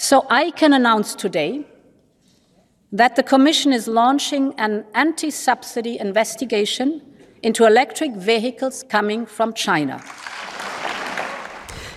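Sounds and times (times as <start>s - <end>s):
speech: 0.1s - 1.7s, 2.9s - 10.5s
crowd applauding: 10.2s - 11.9s.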